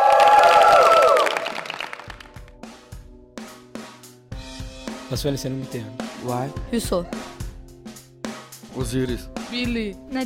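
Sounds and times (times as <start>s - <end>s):
cheering: 0.0s - 2.1s
audience applause: 0.0s - 2.6s
speech: 5.1s - 7.3s, 8.8s - 10.2s.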